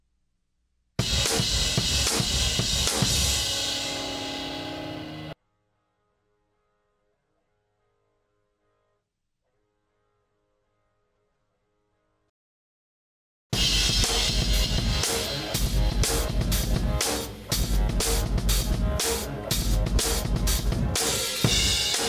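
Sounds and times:
cymbal: 1.0 - 5.4, 13.6 - 22.0.

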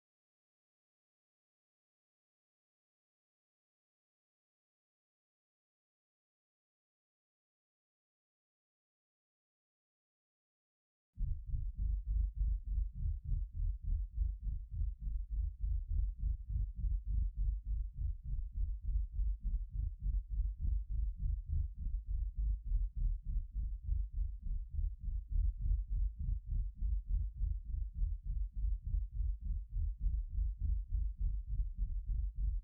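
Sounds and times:
bass: 11.2 - 32.6.

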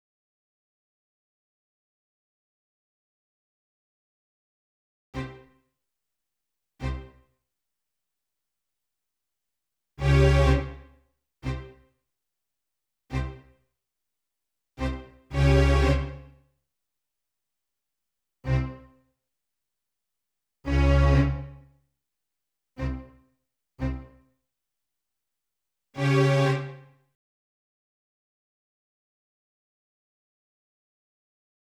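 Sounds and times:
strings: 5.2 - 5.5, 6.8 - 7.2, 10.0 - 11.8, 13.1 - 13.5, 14.8 - 16.4, 18.5 - 18.9, 20.7 - 21.6, 22.8 - 23.2, 23.8 - 24.2, 26.0 - 26.9.

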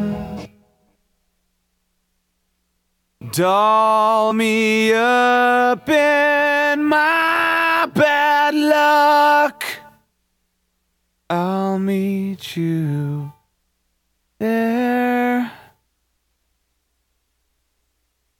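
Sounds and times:
person singing: 0.0 - 0.5, 3.2 - 10.0, 11.3 - 13.4, 14.4 - 15.8.

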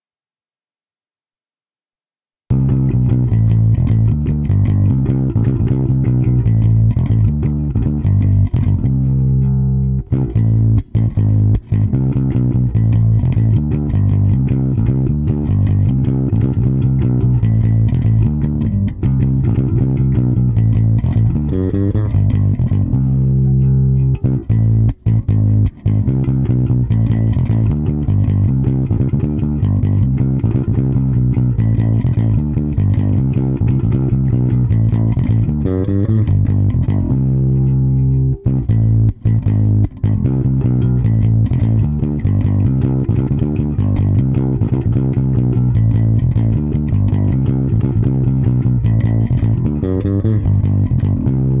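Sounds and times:
rhythm: 2.5 - 51.5.

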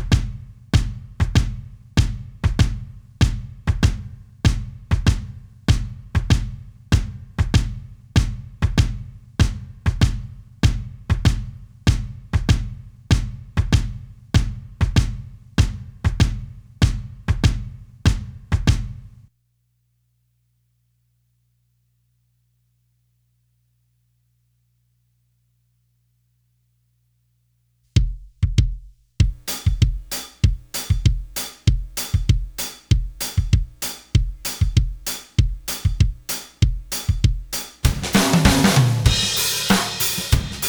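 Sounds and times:
drums: 0.0 - 19.3, 27.9 - 40.6.

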